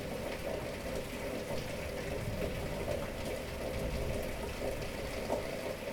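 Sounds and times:
thunderstorm: 0.1s - 5.8s.

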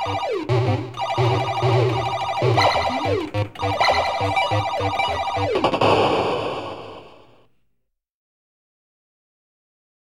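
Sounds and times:
video game general atmosphere: 0.0s - 7.5s.

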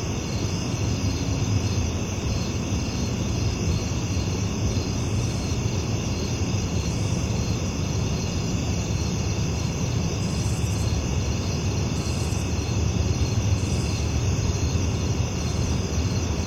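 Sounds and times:
crickets chirping: 0.0s - 16.4s.

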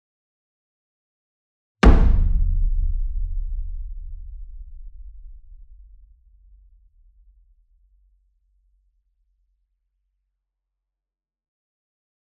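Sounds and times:
60 inch taiko drum hit with soft beater: 1.8s - 6.0s.

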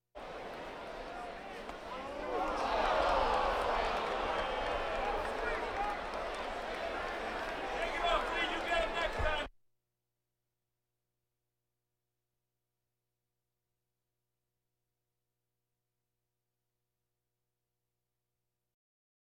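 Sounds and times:
crowds: 0.2s - 9.5s.

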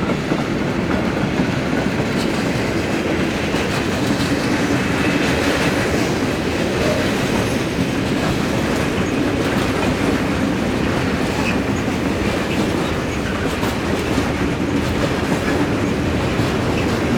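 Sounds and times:
train passing station: 0.0s - 17.1s.

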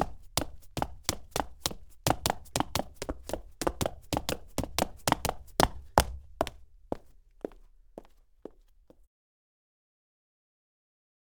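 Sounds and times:
foley footsteps on clean cement: 0.0s - 9.1s.

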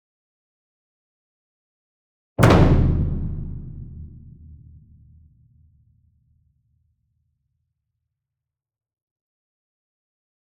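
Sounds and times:
medium concert bass drum flam in a drum ensemble: 2.4s - 5.3s.

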